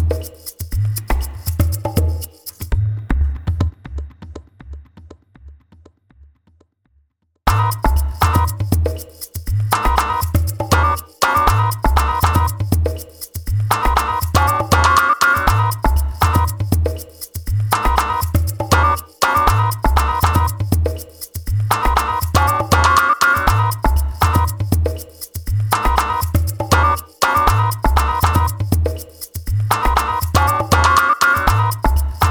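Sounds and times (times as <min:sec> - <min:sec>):
cinematic percussion background: 0:00.0 - 0:05.6, 0:07.5 - 0:32.2.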